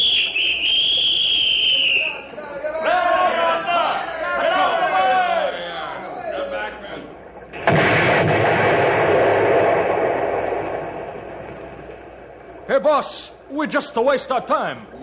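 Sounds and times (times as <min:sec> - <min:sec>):
shrill warning whistle: 0:00.0 - 0:02.3
excited voices shouting: 0:01.6 - 0:05.8
crashing rumbling debris of logs blown apart: 0:07.5 - 0:12.7
dynamite blast blowing up log jam: 0:07.5 - 0:12.7
speech: 0:12.8 - 0:15.0.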